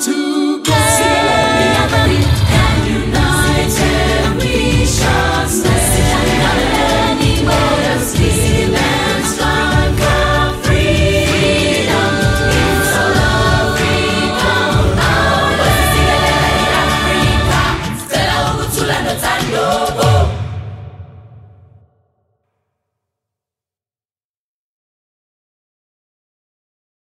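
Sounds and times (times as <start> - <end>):
youth choir singing a national anthem: 0.0 - 20.7.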